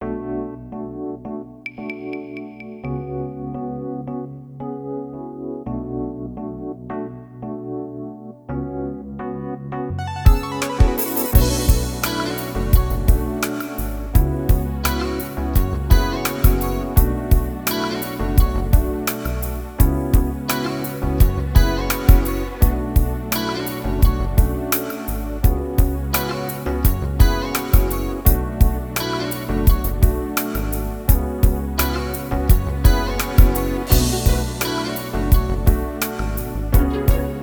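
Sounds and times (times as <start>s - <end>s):
synth guitar in B minor: 10.0s - 37.4s.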